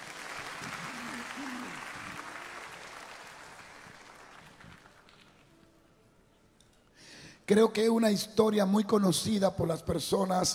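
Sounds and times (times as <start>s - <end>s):
audience applauding: 0.0s - 5.6s
speech: 7.5s - 10.5s.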